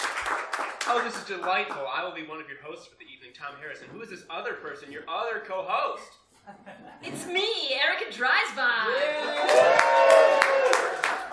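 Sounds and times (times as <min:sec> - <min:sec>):
audience applause: 0:00.0 - 0:01.9, 0:09.0 - 0:11.3
speech: 0:00.9 - 0:10.5.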